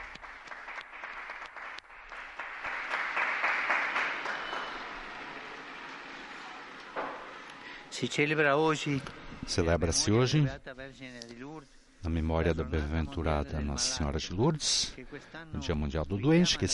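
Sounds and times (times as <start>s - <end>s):
large crowd applauding outdoors in a square: 0.0s - 7.9s
speech: 8.0s - 11.3s, 12.0s - 16.7s.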